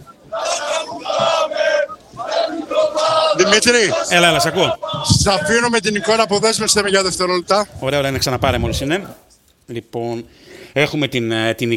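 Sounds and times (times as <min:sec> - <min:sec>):
large crowd of football fans chanting loudly: 0:00.0 - 0:07.5
speech: 0:03.4 - 0:11.7.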